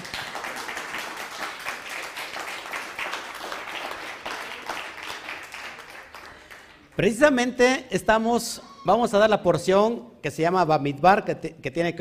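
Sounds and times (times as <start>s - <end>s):
applause: 0.0s - 7.0s
speech: 7.0s - 12.0s.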